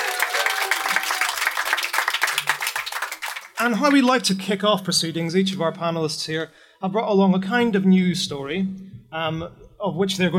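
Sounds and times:
live festival audience applauding in tent at Green Man Festival: 0.0s - 4.0s
speech: 3.6s - 10.3s.

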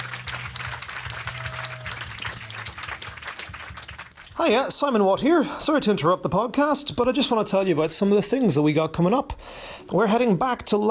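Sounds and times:
audience applause: 0.0s - 4.7s
speech: 4.4s - 10.8s.

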